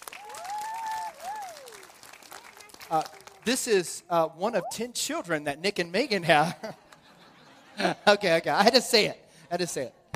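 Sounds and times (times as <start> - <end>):
audience clapping for a young boy called to the front: 0.0 - 4.0
speech: 2.9 - 6.8, 7.8 - 10.0
laughter: 6.3 - 8.7.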